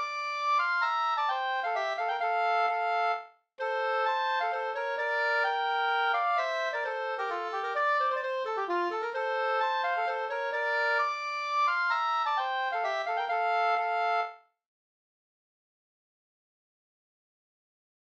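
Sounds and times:
hambo polska folk dance tune: 0.0s - 14.3s.

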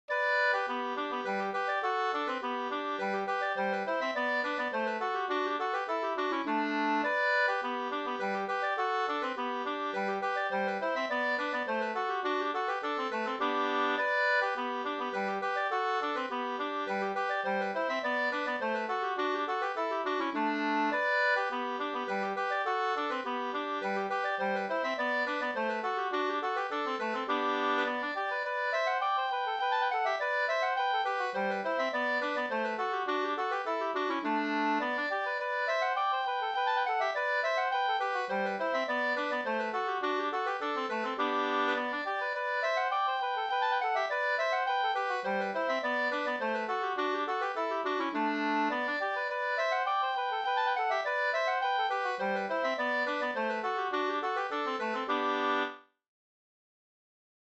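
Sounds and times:
two-part polska dance tune: 0.1s - 55.8s.

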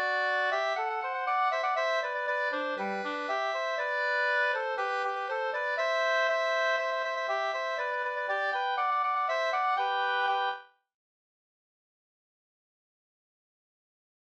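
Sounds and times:
polka: 0.0s - 10.7s.

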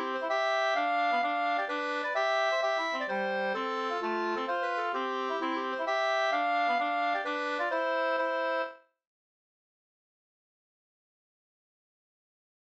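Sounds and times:
hambo polska folk dance tune: 0.0s - 8.8s.

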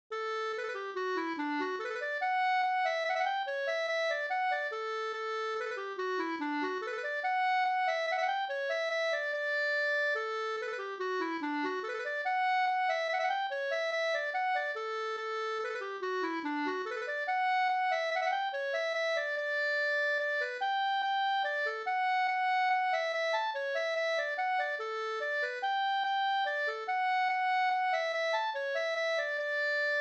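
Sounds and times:
mazurka: 0.2s - 29.9s.

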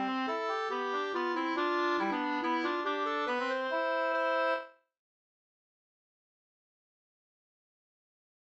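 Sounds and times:
hambo polska dance tune: 0.0s - 4.6s.

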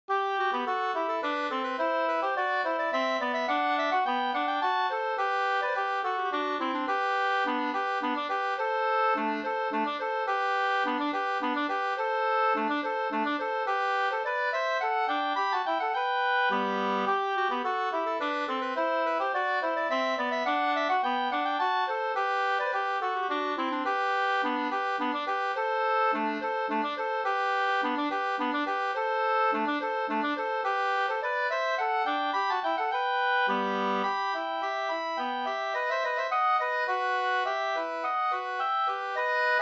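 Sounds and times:
two-part slangpolska: 0.1s - 39.6s.

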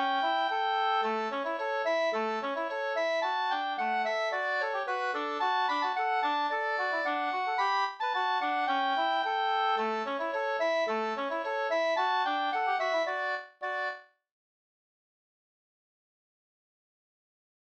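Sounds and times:
polka in D major: 0.0s - 14.0s.

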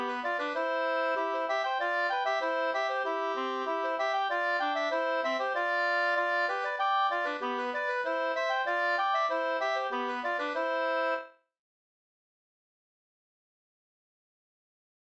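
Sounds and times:
halling folk dance music: 0.0s - 11.3s.

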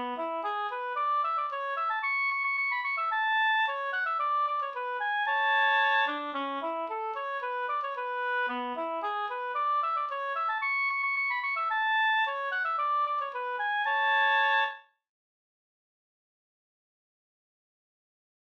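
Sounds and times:
quadrille tune in A major: 0.0s - 14.8s.

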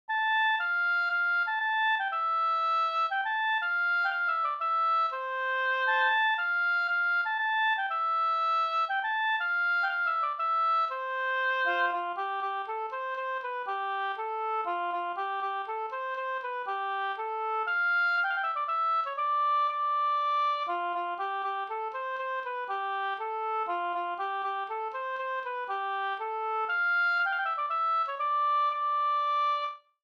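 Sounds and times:
polska folk dance tune: 0.1s - 29.7s.

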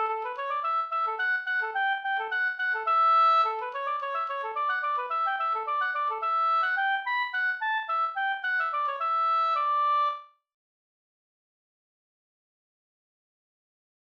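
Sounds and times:
slangpolska folk dance tune: 0.0s - 10.2s.

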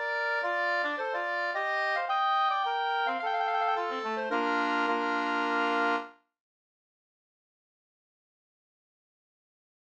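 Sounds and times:
two-part polska folk dance tune: 0.0s - 6.1s.

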